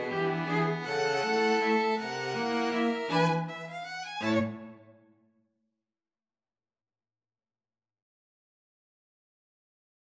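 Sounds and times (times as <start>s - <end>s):
string quartet: 0.0s - 5.0s.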